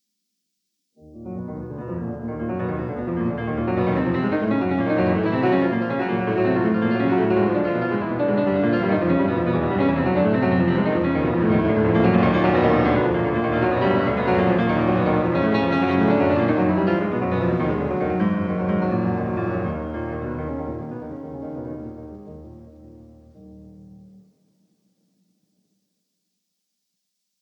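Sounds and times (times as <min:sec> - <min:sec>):
prelude in E flat minor: 0:01.1 - 0:24.2.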